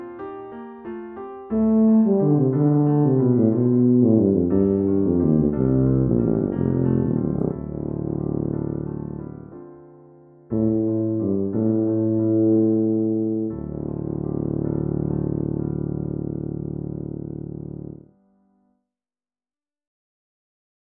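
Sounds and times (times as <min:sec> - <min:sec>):
tuba playing an elegy: 0:01.6 - 0:09.4, 0:10.5 - 0:18.0.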